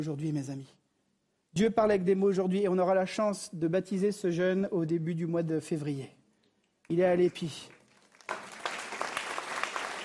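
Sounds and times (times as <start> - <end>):
speech: 0.0 - 0.8, 1.5 - 6.2, 6.9 - 8.4
church congregation applauding: 6.9 - 10.0.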